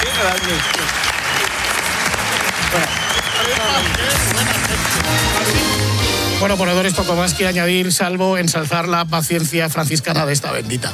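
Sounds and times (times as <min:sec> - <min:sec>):
applause: 0:00.0 - 0:06.4
speech: 0:00.2 - 0:01.0, 0:02.7 - 0:05.6, 0:06.4 - 0:10.9.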